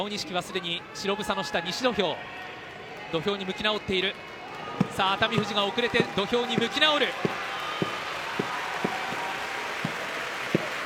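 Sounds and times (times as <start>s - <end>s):
speech: 0.0s - 7.4s
large arena crowd applauding: 1.3s - 10.8s.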